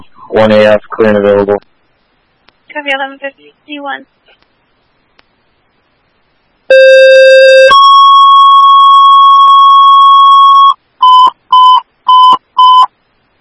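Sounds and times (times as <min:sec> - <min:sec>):
speech: 0:00.3 - 0:01.7, 0:02.7 - 0:04.4, 0:06.7 - 0:07.7
emergency dispatch alert tones: 0:06.7 - 0:12.9.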